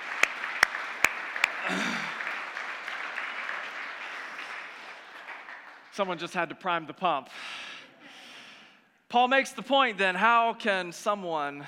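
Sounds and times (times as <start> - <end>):
audience clapping: 0.0 - 6.5
speech: 6.0 - 7.5, 9.1 - 11.6.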